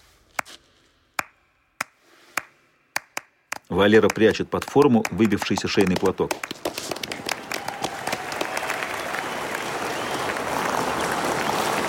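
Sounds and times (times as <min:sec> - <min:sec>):
speech: 0:03.8 - 0:06.6
audience applauding in a hockey arena: 0:04.0 - 0:11.8.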